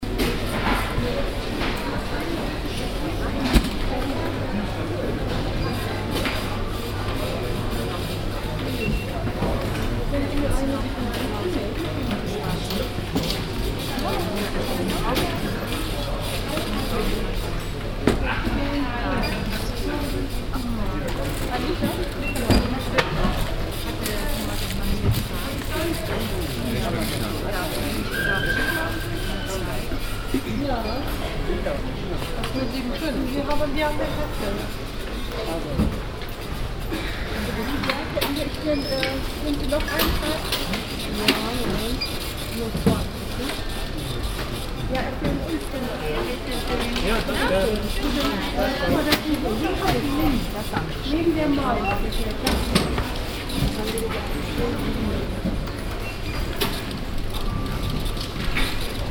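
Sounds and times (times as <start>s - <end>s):
DIY store checkout counter ambience: 0.0s - 59.0s.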